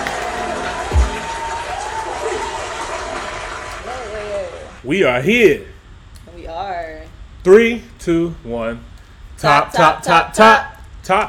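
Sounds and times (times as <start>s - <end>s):
crowd cheering and applauding: 0.0s - 4.8s
speech: 4.8s - 5.7s, 7.4s - 11.2s.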